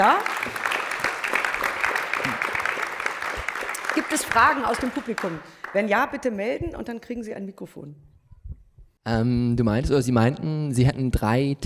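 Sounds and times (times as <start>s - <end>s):
audience applause: 0.0s - 6.0s
speech: 4.0s - 8.1s, 9.0s - 11.6s.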